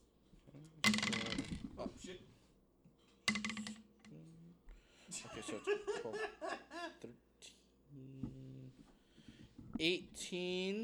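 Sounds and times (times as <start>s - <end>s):
multiple dice grabbed and rolled for a damage roll: 0.9s - 1.7s, 3.3s - 3.8s
soft handling of dice: 0.9s - 1.8s
speech: 1.8s - 2.4s, 5.1s - 8.3s, 9.8s - 10.8s
laughter: 5.1s - 7.1s.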